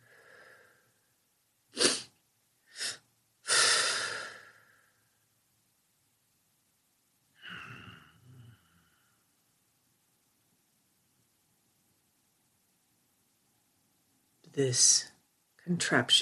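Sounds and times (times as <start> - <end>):
deliberate breathing: 0.0 - 1.0, 3.5 - 5.2, 7.4 - 9.3
speech: 14.6 - 16.2.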